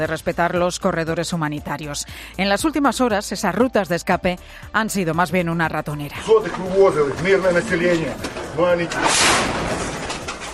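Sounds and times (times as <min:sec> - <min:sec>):
speech: 0:00.0 - 0:09.8
rubble falling after mortar explosion in a street: 0:08.1 - 0:10.5.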